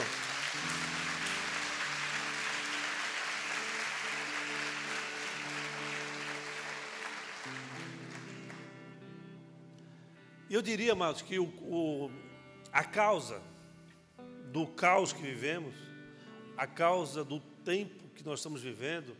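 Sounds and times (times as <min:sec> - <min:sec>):
audience applause: 0:00.0 - 0:08.8
speech: 0:10.5 - 0:13.5, 0:14.5 - 0:15.9, 0:16.6 - 0:19.1.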